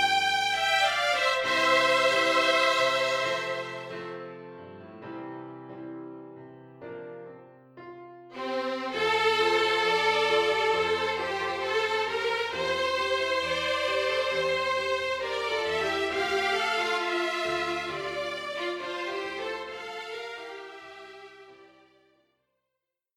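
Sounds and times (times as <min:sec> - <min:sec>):
violin duet: 0:00.0 - 0:04.5, 0:08.3 - 0:22.0
piano accompaniment: 0:00.0 - 0:22.0.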